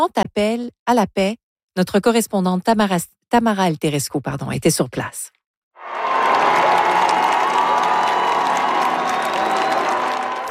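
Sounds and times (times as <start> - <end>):
speech: 0.0 - 5.4
crowd at Metz cheering and applauding Pope Leo XIV: 5.8 - 10.4.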